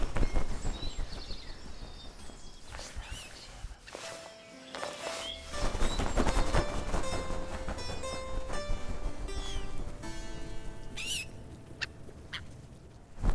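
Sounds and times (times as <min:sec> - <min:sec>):
falcon: 0:00.1 - 0:13.3.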